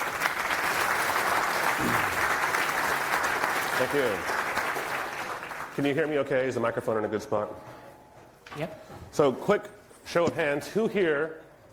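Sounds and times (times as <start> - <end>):
audience applause: 0.0 - 6.0
speech: 1.8 - 2.2, 3.8 - 4.3, 5.8 - 7.7, 8.5 - 11.4.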